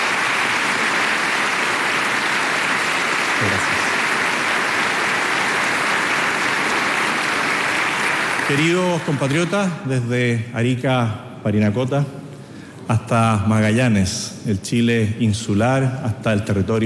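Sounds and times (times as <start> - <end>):
applause: 0.0 - 9.8
speech: 8.5 - 12.2, 12.9 - 16.8.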